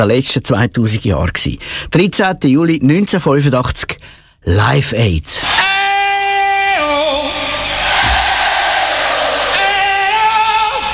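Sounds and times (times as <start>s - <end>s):
speech: 0.0s - 5.7s
singer holding a long bright note: 5.4s - 10.9s
massive concert crowd roaring back a loud sung reply: 7.1s - 10.9s.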